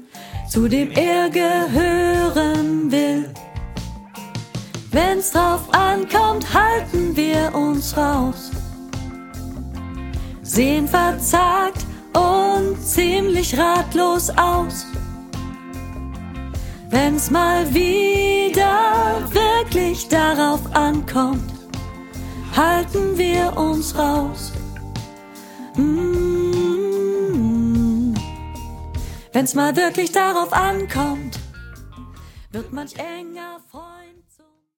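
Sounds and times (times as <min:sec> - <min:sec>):
soprano learning track: 0:00.4 - 0:03.4, 0:04.9 - 0:08.6, 0:10.4 - 0:15.0, 0:16.9 - 0:21.6, 0:22.4 - 0:24.7, 0:25.7 - 0:28.4, 0:29.3 - 0:31.5, 0:32.5 - 0:34.4.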